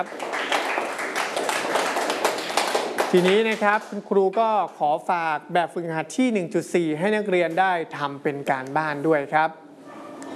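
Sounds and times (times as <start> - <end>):
speech: 0.0 - 0.6, 3.1 - 9.6
classmates clapping in a Thai primary mathematics lesson: 0.0 - 4.5.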